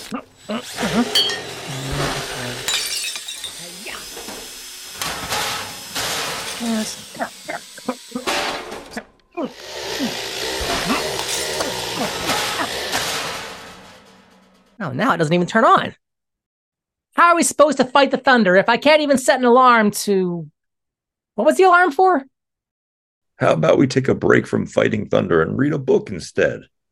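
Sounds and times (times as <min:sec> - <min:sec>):
grinding, whirring and hissing bursts: 0:00.0 - 0:14.8
speech: 0:00.5 - 0:02.7, 0:14.9 - 0:16.0, 0:17.2 - 0:20.5, 0:21.4 - 0:22.3, 0:23.4 - 0:26.7
sharp metallic clanks and bangs: 0:01.2 - 0:01.6.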